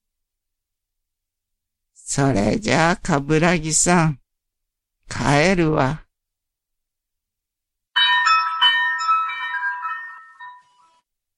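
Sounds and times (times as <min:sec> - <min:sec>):
speech: 0:02.1 - 0:04.2, 0:05.1 - 0:06.0
cowbell on a shop door ringing: 0:08.0 - 0:11.0.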